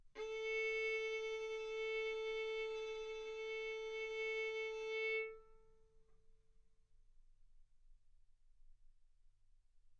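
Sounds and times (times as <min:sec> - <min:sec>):
violin bowed arco notes: 0:00.2 - 0:05.5.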